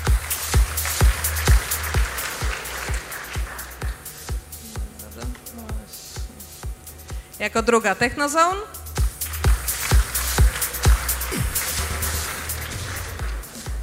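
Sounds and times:
audience applause: 0.0s - 4.3s, 9.2s - 13.8s
speech: 7.4s - 8.8s.

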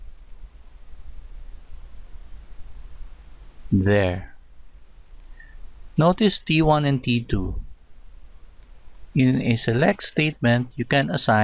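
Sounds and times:
computer mouse clicks opening a file: 0.0s - 0.5s, 2.5s - 2.9s
low hum: 0.0s - 11.4s
speech: 3.7s - 4.3s, 6.0s - 7.6s, 9.2s - 11.4s.

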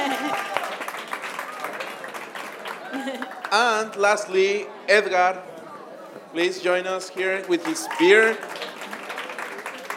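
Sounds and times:
audience applause: 0.0s - 3.6s, 7.5s - 9.9s
speech: 3.5s - 5.5s, 6.3s - 8.6s.

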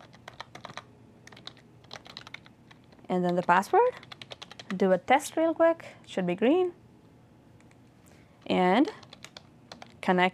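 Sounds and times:
typing on a computer keyboard: 0.0s - 4.8s, 8.4s - 10.0s
speech: 3.1s - 4.1s, 4.7s - 6.8s, 8.5s - 9.0s, 10.1s - 10.3s.

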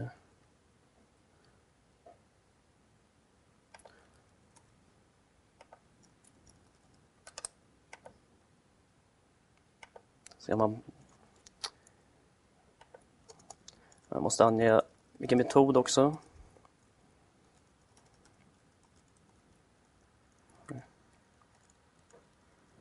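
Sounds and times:
clicks from pressing a save button on a computer: 3.7s - 4.7s, 5.6s - 8.2s, 9.8s - 10.4s, 12.8s - 14.2s, 17.5s - 19.4s, 21.4s - 22.3s
speech: 10.4s - 11.0s, 14.3s - 16.3s.

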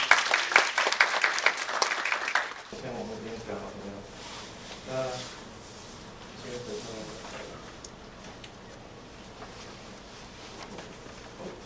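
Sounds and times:
audience applause welcoming a guest lecturer at a Unity 4.3 training course: 0.0s - 2.7s
speech: 2.7s - 5.5s, 6.4s - 7.6s.

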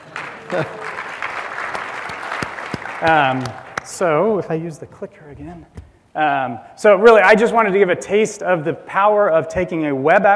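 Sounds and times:
crowd applauding: 0.0s - 4.1s
speech: 0.5s - 0.8s, 3.0s - 10.3s.

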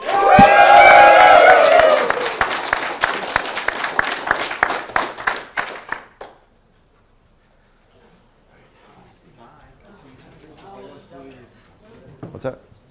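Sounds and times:
audience applause: 0.0s - 6.3s.

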